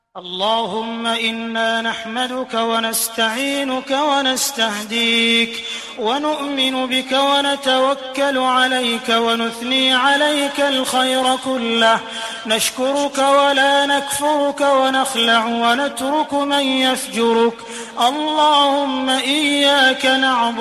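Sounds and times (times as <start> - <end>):
Quran recitation ringtone: 0.0 - 20.5.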